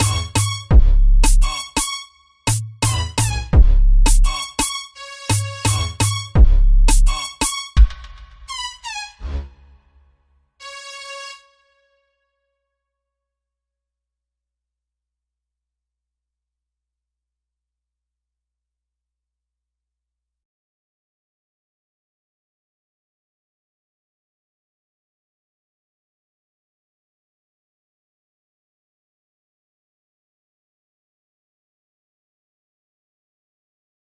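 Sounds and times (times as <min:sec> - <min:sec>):
deep bass: 0:00.0 - 0:01.5, 0:02.5 - 0:04.4, 0:05.4 - 0:07.2.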